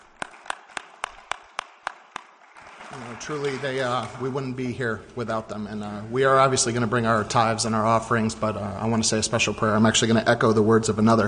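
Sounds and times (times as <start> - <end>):
hand claps for mothers: 0.0 - 4.2
speech: 3.0 - 11.2.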